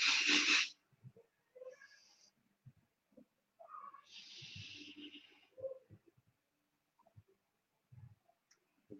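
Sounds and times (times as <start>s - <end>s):
vaping from a 0.2 ohm coil fired at 60 watts: 0.0s - 0.8s, 4.1s - 5.2s
faint breaths: 0.0s - 2.8s, 3.6s - 6.3s.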